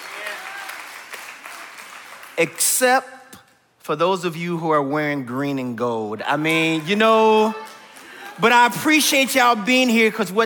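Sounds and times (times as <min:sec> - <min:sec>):
audience applause: 0:00.0 - 0:02.5, 0:06.6 - 0:09.5
speech: 0:02.4 - 0:03.2, 0:03.9 - 0:07.7, 0:08.4 - 0:10.4.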